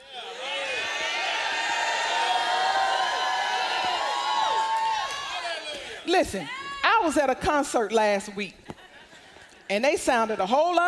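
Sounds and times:
audience shouting: 0.0 - 6.8
speech: 6.1 - 8.7, 9.7 - 10.8.

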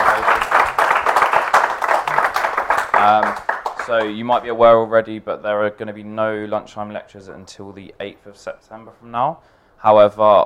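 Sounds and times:
audience applause: 0.0 - 4.4
speech: 3.0 - 10.4.

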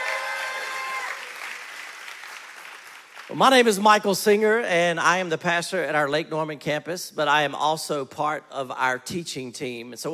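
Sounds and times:
faint church audience applause: 0.0 - 3.3
speech: 3.3 - 10.1.

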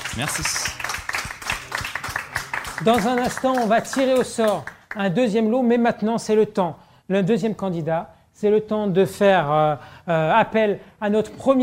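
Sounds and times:
crowd applauding: 0.0 - 5.0
speech: 0.2 - 0.9, 2.8 - 11.6.

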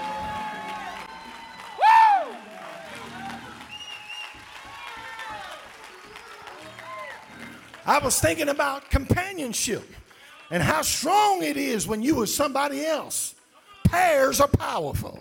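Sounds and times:
audience clapping hands: 0.0 - 12.0
speech: 7.9 - 15.1.

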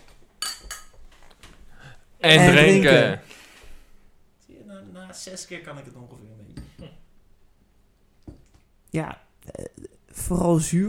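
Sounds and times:
glasses clinking in a toast: 0.4 - 1.0
speech: 2.2 - 3.2, 5.2 - 7.0, 8.9 - 10.8.

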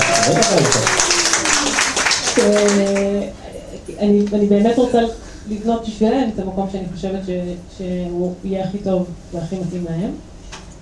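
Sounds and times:
audience applause: 0.0 - 3.2
speech: 0.3 - 1.0, 2.4 - 10.3.

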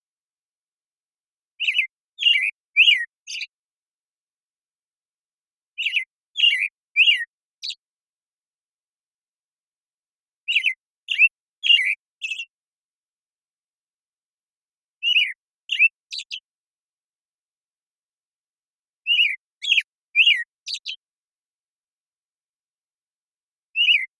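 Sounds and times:
American Robin singing: 1.6 - 3.6, 5.7 - 7.9, 10.4 - 12.6, 15.0 - 16.5, 19.0 - 21.1, 23.7 - 24.1.

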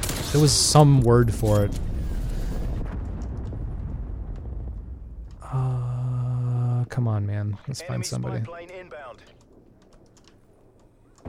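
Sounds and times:
sharp crackles: 0.0 - 5.9, 7.8 - 11.2
speech: 0.3 - 1.9, 7.0 - 9.4
cruise missile explosion in a video game: 1.8 - 6.0.

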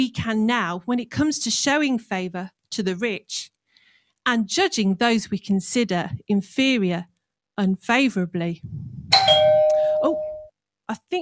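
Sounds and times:
speech: 0.0 - 3.5, 4.2 - 10.2, 10.9 - 11.2
doorbell chiming: 9.1 - 10.5.

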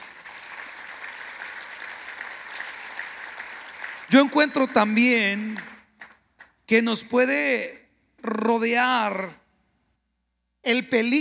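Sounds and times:
audience applause: 0.0 - 6.5
speech: 4.1 - 5.7, 6.7 - 9.4, 10.6 - 11.1.

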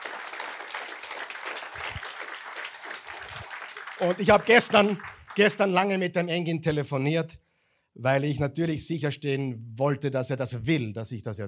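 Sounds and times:
audience applause: 0.0 - 5.9
speech: 4.0 - 7.4, 8.0 - 11.4.

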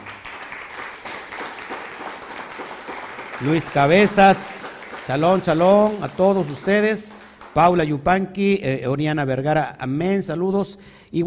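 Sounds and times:
crowd applause: 0.0 - 7.6
speech: 3.4 - 11.2.

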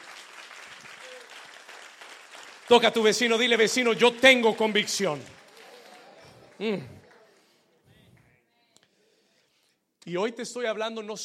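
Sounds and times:
crowd applause: 0.0 - 7.6
speech: 2.7 - 5.4, 6.6 - 7.0, 10.1 - 11.2.

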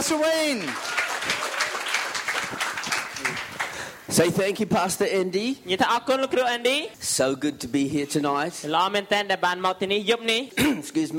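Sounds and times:
speech: 0.1 - 1.8, 4.1 - 11.1
audience welcome applause: 0.1 - 4.0.

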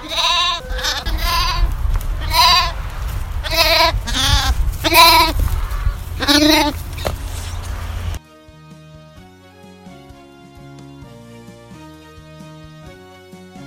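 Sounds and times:
lambs bleating for their dinner: 0.0 - 2.8, 3.4 - 7.1
low rumble: 0.0 - 8.2.

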